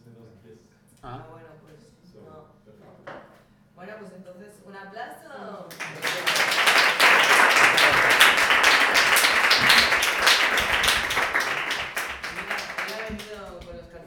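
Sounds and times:
crowd applauding: 5.7 - 13.7.

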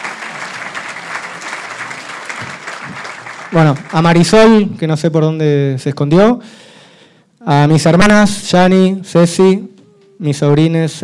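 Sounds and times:
audience applause for Nora Cortiñas's caregivers at a book presentation: 0.0 - 4.7
speech: 3.5 - 6.6, 7.4 - 11.0.

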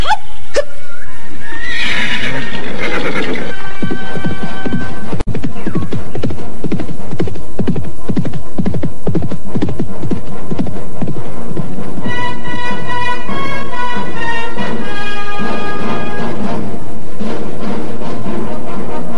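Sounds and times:
horse neighing: 0.6 - 4.9
hooves clip-clopping: 1.8 - 19.1.

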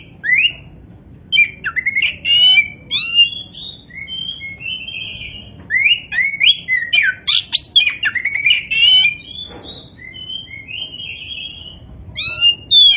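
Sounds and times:
Oriental magpie-robin singing: 0.0 - 0.7, 1.3 - 12.9.

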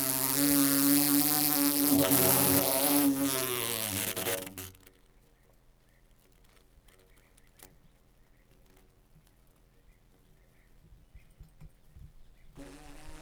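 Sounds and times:
bumblebee buzzing trapped inside a metal pole: 0.0 - 4.7, 12.6 - 13.1.

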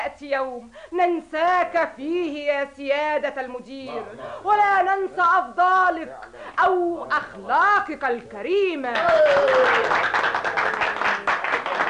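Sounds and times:
speech: 0.1 - 11.0
audience applause: 9.0 - 11.8.

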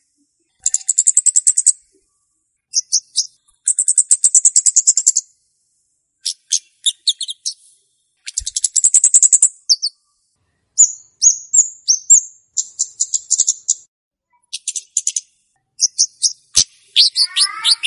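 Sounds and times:
flowerpecker ticking calls: 0.6 - 1.8, 2.7 - 5.2, 8.3 - 10.0, 10.8 - 13.9, 14.5 - 17.8.

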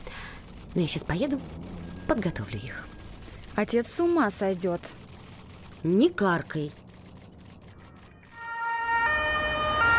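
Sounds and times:
low city traffic rumble: 0.0 - 8.4
speech: 0.8 - 3.0, 3.6 - 5.0, 5.8 - 6.8
ambulance siren speeding along a city street: 8.3 - 9.9.

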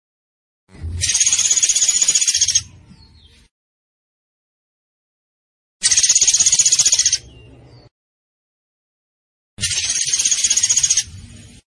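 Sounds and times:
zebra finch rattling call: 1.0 - 2.6, 5.8 - 7.2, 9.6 - 11.1.

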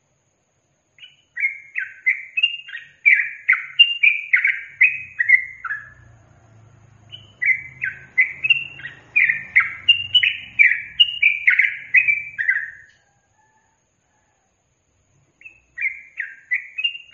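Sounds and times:
yellow-vented bulbul singing: 1.0 - 13.1, 15.2 - 17.1.

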